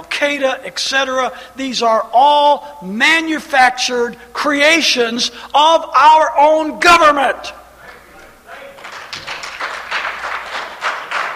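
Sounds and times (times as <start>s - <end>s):
speech: 0.2s - 7.6s
scattered applause: 8.8s - 11.3s.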